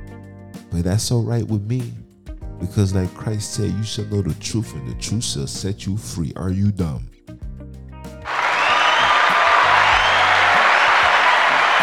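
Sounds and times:
speech: 0.7s - 2.0s, 2.6s - 7.2s
crowd applause sound effect: 8.3s - 11.8s.

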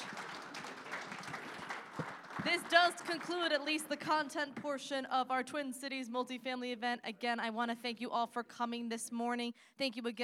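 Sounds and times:
audience applause: 0.0s - 3.7s
speech: 2.4s - 10.2s.

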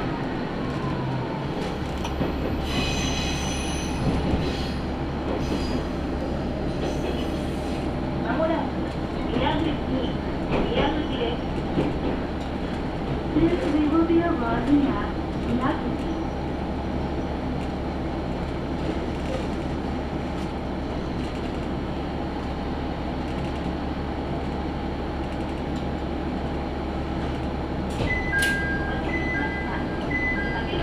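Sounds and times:
Tenryu Hamanako Railway railcar rolling between Kanasashi and Tenryu-Futamata: 0.0s - 30.8s
short bright beeps: 28.1s - 30.7s.

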